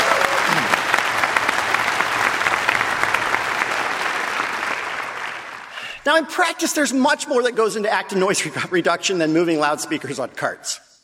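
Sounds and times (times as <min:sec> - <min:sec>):
audience applause for the students: 0:00.0 - 0:06.0
speech: 0:06.1 - 0:10.9.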